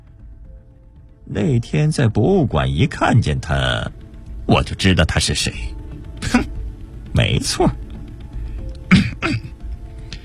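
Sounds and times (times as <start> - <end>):
speech: 1.3 - 6.4, 7.2 - 7.8
old librarian clearing his throat in a radio drama: 6.2 - 6.6, 8.9 - 9.6.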